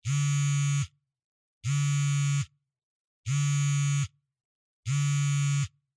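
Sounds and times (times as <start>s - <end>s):
cell phone vibrating on a cushion: 0.0s - 1.0s, 1.6s - 2.6s, 3.2s - 4.2s, 4.8s - 5.8s.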